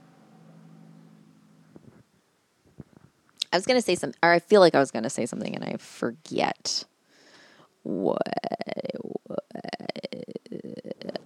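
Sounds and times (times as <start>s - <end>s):
truck engine rumbling outside: 0.0s - 2.9s
speech: 3.5s - 6.9s, 7.8s - 8.4s.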